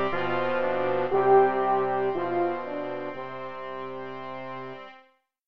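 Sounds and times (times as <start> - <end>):
brass quintet of trumpets, horn, baritone and trombone playing: 0.1 - 4.0.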